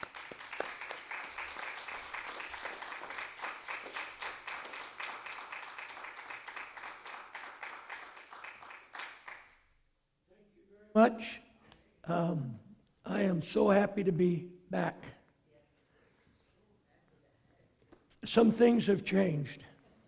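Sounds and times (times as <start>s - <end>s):
audience hand clapping: 0.0s - 9.9s
speech: 11.0s - 11.4s, 12.1s - 15.1s, 18.3s - 19.7s.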